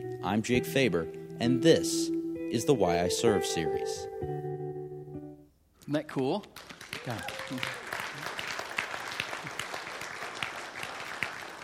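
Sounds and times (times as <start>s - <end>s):
speech: 0.2s - 4.5s, 5.9s - 7.8s
audience clapping: 6.1s - 11.6s.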